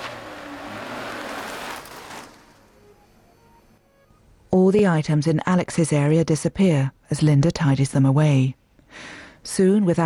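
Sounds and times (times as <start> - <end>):
car driving away: 0.0 - 3.1
speech: 4.7 - 10.0.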